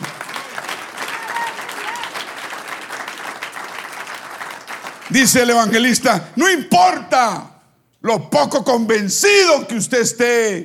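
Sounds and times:
audience applause: 0.0s - 5.5s
speech: 5.1s - 10.6s.

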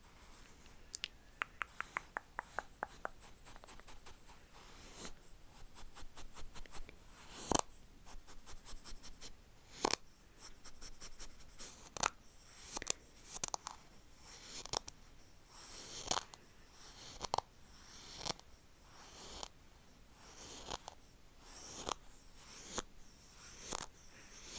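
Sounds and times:
low soft hiss: 0.0s - 24.5s
sharp clicks: 0.9s - 3.2s
rapid tapping on a bare mic: 1.4s - 3.8s
scratchy rubbing: 1.6s - 24.5s.

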